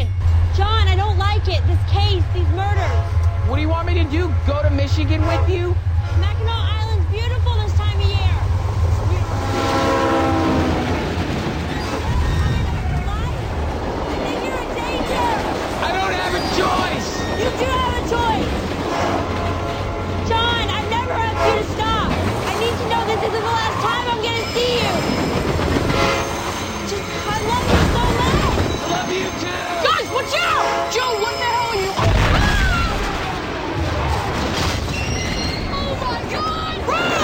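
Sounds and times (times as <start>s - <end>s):
indistinct voices: 0.0s - 37.2s
train rumbling past: 0.0s - 37.2s
speech: 1.4s - 7.5s
train horn blaring: 2.5s - 8.4s, 9.0s - 11.2s, 16.9s - 32.0s.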